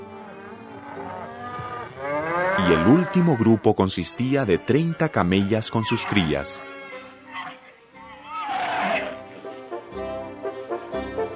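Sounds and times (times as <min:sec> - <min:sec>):
cattle mooing: 0:00.0 - 0:03.8, 0:04.6 - 0:09.2
speech: 0:02.7 - 0:06.7.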